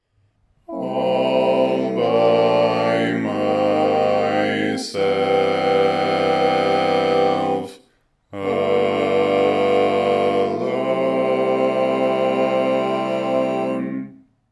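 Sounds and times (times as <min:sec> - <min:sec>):
five-part barbershop singing: 0:00.7 - 0:14.2.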